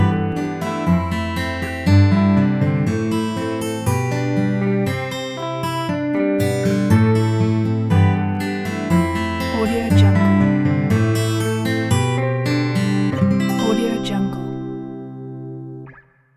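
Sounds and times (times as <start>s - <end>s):
warm and peaceful guitar music: 0.0s - 16.3s.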